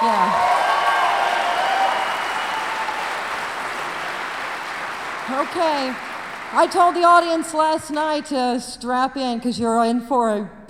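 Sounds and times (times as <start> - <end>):
crowd applause: 0.0 - 7.6
speech: 5.3 - 10.6.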